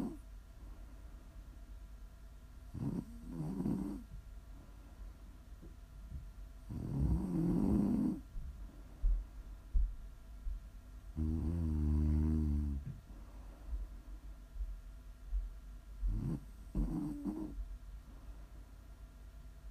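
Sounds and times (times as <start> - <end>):
snoring: 0.0 - 0.2, 2.7 - 4.1, 6.7 - 8.3, 11.2 - 12.9, 16.1 - 17.6
quieter breathing: 0.6 - 1.4, 4.5 - 5.2, 8.6 - 9.5, 12.8 - 14.4, 18.0 - 18.9.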